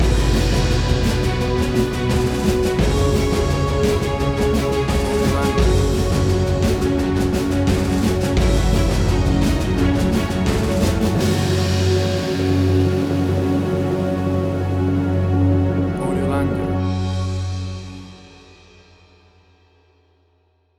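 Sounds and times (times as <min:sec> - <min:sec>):
big action movie trailer sound: 0:00.0 - 0:18.3.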